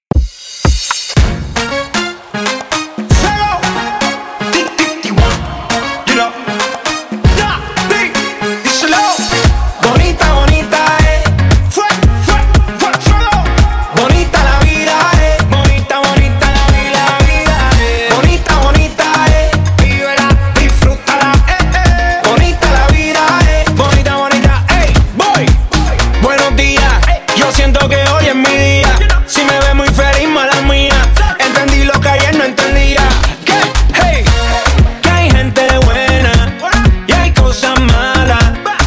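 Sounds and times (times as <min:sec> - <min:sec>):
clean urban music outro at 116 BPM: 0:00.1 - 0:38.8.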